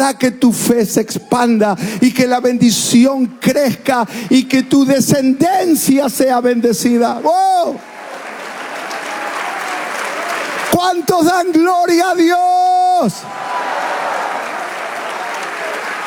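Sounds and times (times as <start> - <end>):
speech: 0.0 - 7.9, 10.8 - 13.4
audience applause: 7.6 - 12.2, 13.2 - 16.0.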